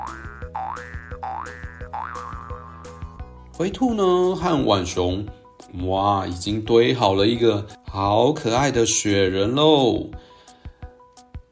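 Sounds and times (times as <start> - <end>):
cartoon boing jumping sound effect: 0.0 - 3.0
plucky musical backing: 0.0 - 10.0
speech: 3.6 - 10.3.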